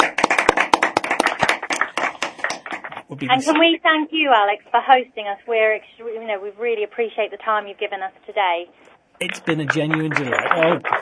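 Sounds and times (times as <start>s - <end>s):
studio audience clapping for school staff and students: 0.0s - 3.7s, 9.2s - 11.0s
speech: 3.1s - 11.0s.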